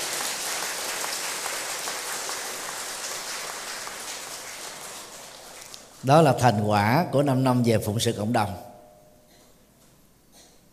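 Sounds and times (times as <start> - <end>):
audience applause: 0.0 - 6.0
speech: 6.0 - 8.7.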